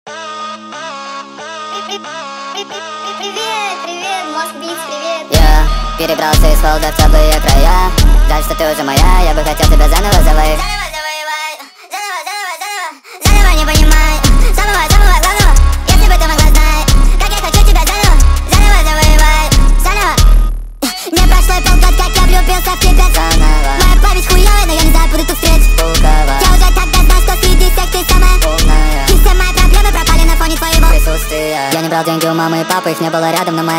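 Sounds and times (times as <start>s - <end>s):
jerk type beat: 5.3s - 10.9s, 13.2s - 33.7s.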